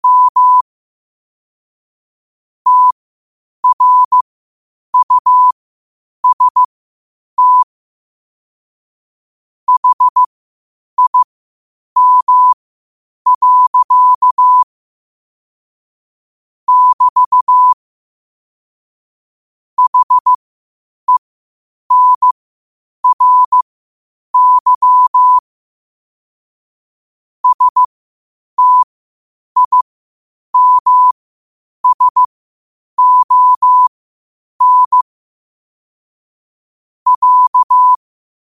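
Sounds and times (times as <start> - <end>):
morse code at 5 wpm: 0.0 - 0.6, 2.7 - 3.0, 3.6 - 4.2, 5.0 - 5.6, 6.2 - 6.7, 7.4 - 7.7, 9.7 - 10.3, 11.0 - 11.3, 12.0 - 12.6, 13.3 - 14.7, 16.7 - 17.8, 19.8 - 20.4, 21.9 - 22.4, 23.0 - 23.6, 24.4 - 25.4, 27.4 - 27.9, 28.6 - 28.9, 29.6 - 29.9, 30.6 - 31.2, 31.8 - 32.3, 33.0 - 33.9, 34.6 - 35.0, 37.1 - 38.0.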